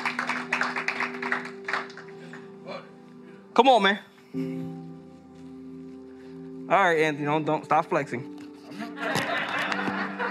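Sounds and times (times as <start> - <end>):
audience round of applause: 0.0 - 2.4
speech: 3.6 - 4.8, 6.7 - 8.3
laughter: 8.7 - 10.2.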